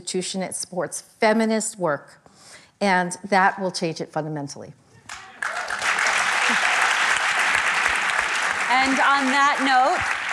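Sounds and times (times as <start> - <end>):
speech: 0.1 - 5.2, 8.8 - 10.2
audience applause: 5.1 - 10.3.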